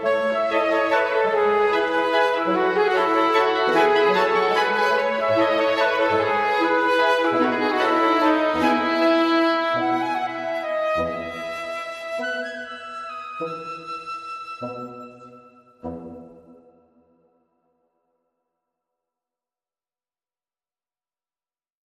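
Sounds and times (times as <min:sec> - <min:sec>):
woodwinds: 0:00.0 - 0:16.8
brass: 0:00.0 - 0:16.9.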